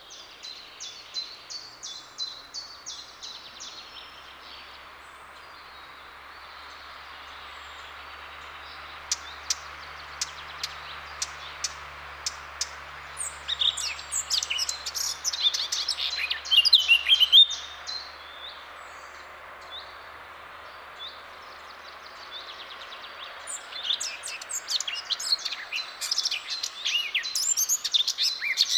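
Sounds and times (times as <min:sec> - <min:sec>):
Eurasian blackcap warbling song: 0:09.1 - 0:18.0, 0:23.6 - 0:28.7.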